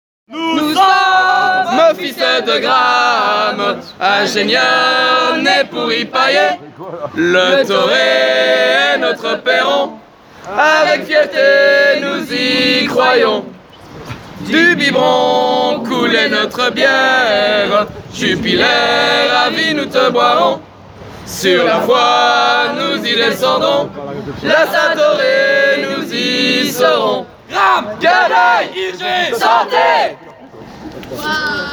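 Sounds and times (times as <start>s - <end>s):
chanting: 0.3s - 20.7s, 21.3s - 30.4s.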